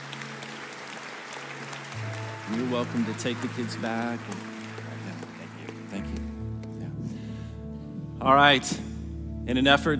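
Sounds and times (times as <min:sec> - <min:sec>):
audience round of applause: 0:00.0 - 0:06.6
speech: 0:02.5 - 0:04.5, 0:08.2 - 0:08.9, 0:09.5 - 0:09.9.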